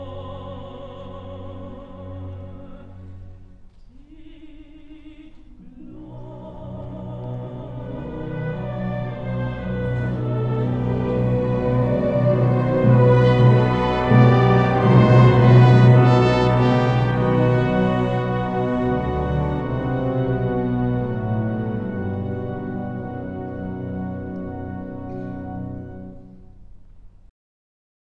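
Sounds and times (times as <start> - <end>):
lute playing: 7.7 - 26.4.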